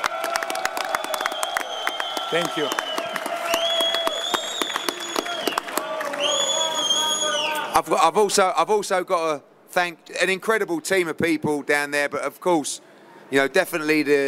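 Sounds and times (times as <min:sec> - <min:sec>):
large arena crowd applauding and cheering: 0:00.0 - 0:07.7
speech: 0:02.3 - 0:02.9, 0:07.8 - 0:14.2.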